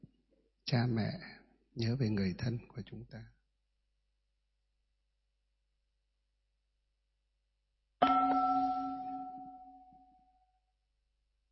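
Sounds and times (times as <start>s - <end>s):
speech: 0.7s - 3.4s
meditation bell struck: 8.0s - 10.4s.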